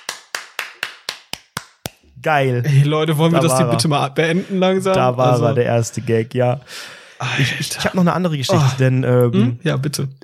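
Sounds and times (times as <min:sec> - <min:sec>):
single pair of hands clapping: 0:00.0 - 0:02.0
speech: 0:02.2 - 0:10.2.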